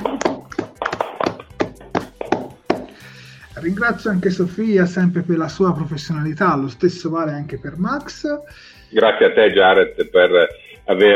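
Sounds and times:
hand claps: 0:00.0 - 0:03.0
speech: 0:03.6 - 0:11.1.

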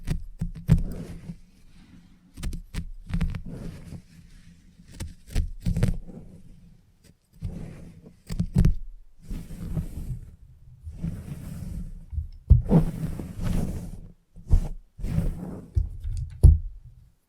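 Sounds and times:
head massage rubbing and brushing: 0:00.0 - 0:16.4.

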